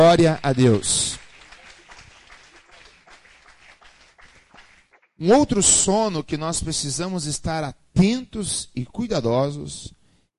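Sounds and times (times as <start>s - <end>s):
speech: 0.0s - 1.2s, 5.2s - 10.0s
audience applauding: 0.0s - 5.1s.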